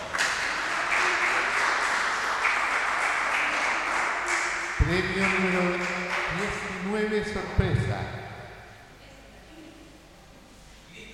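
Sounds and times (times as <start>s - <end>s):
audience applause at a prize draw: 0.0s - 7.0s
speech: 4.9s - 8.2s.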